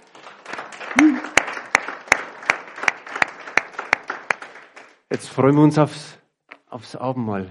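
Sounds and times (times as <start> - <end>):
audience applause: 0.0 - 5.2
speech: 5.1 - 6.2, 6.8 - 7.4.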